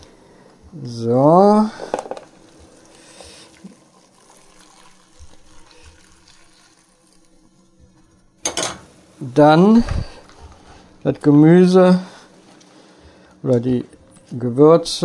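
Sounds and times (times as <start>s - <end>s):
speech: 0.7s - 1.8s, 9.4s - 10.1s, 11.1s - 12.1s, 13.4s - 15.0s
sauce stock poured from one pot into another vessel in a kitchen: 1.3s - 8.2s
liquid splashing: 1.8s - 7.4s.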